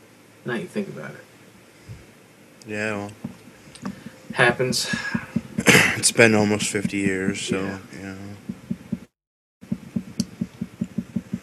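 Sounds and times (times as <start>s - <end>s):
speech: 0.4s - 1.3s, 2.6s - 5.2s, 6.0s - 8.5s
tribal drumming: 3.2s - 11.4s.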